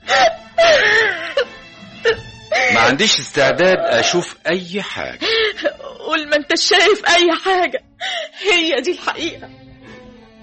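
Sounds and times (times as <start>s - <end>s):
woman crying in an Egyptian radio drama: 0.0s - 2.9s, 3.6s - 4.3s, 5.2s - 8.8s
speech: 2.9s - 9.6s.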